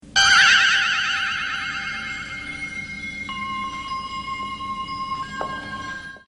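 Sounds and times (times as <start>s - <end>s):
ringing: 0.1s - 6.2s.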